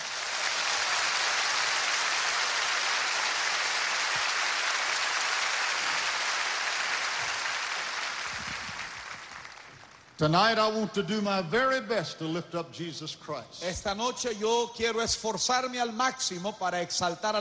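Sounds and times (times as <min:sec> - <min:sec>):
audience applause: 0:00.0 - 0:10.2
speech: 0:10.2 - 0:17.3.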